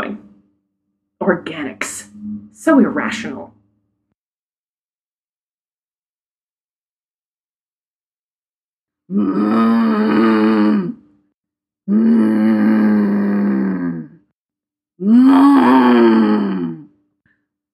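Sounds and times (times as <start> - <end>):
speech: 1.3 - 3.6, 9.1 - 10.4
balloon cows grunting and groaning: 9.1 - 11.0, 11.9 - 14.2, 15.0 - 16.9.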